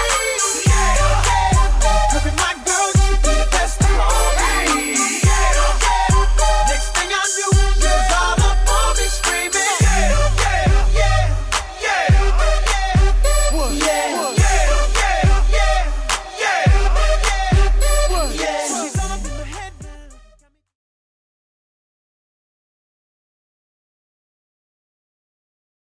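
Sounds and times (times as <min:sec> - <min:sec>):
drum machine beat at 105 bpm: 0:00.0 - 0:20.1.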